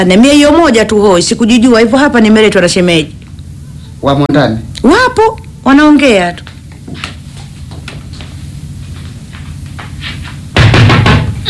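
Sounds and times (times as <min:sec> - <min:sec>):
speech: 0:00.0 - 0:03.2, 0:04.0 - 0:07.1
pounding on a door: 0:10.5 - 0:11.4.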